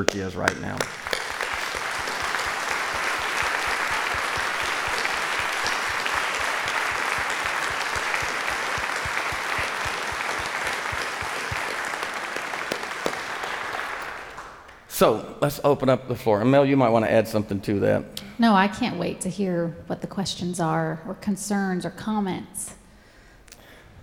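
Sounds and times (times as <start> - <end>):
speech: 0.0 - 1.1, 15.0 - 22.8
large group applauding: 0.0 - 14.8.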